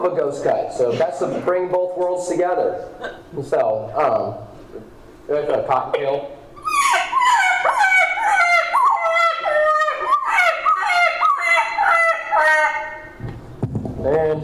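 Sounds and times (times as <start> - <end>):
speech: 0.0 - 6.4
turkey gobbling: 5.9 - 13.2.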